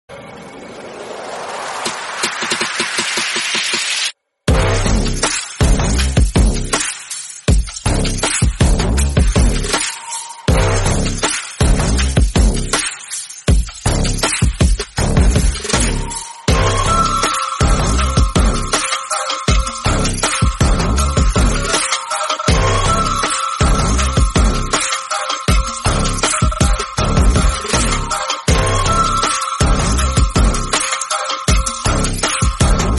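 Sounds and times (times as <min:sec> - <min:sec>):
trap remix music: 0:01.8 - 0:32.9.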